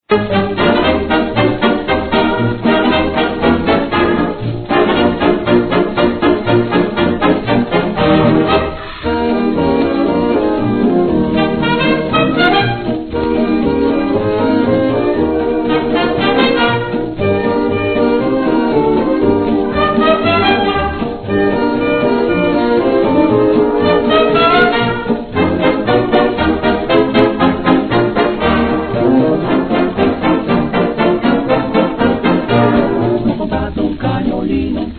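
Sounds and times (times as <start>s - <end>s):
orchestral jazz: 0.0s - 34.9s.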